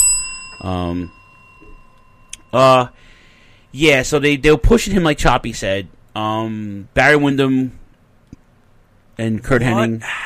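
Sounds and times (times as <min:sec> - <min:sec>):
bell ringing: 0:00.0 - 0:03.9
speech: 0:00.6 - 0:01.2, 0:02.5 - 0:03.1, 0:03.7 - 0:07.8, 0:09.2 - 0:10.2.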